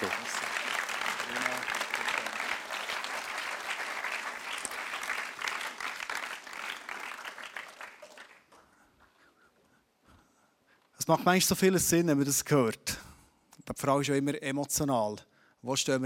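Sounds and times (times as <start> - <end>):
warm audience applause: 0.0 - 8.7
speech: 11.1 - 13.0, 13.8 - 16.0.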